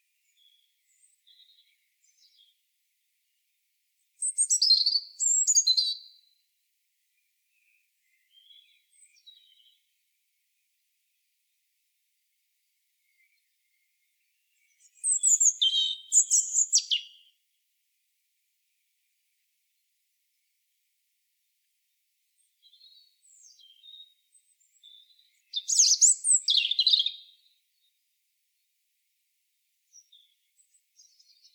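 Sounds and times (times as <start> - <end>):
European robin singing: 4.2 - 6.4, 7.5 - 9.8, 13.0 - 17.4, 22.4 - 27.9, 29.9 - 31.5.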